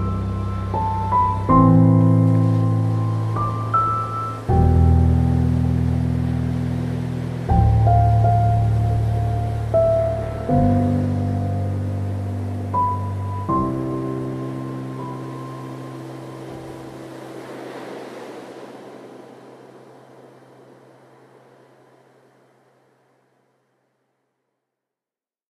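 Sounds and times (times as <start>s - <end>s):
calm music for baby: 0.0s - 18.7s
ocean waves: 0.0s - 24.1s.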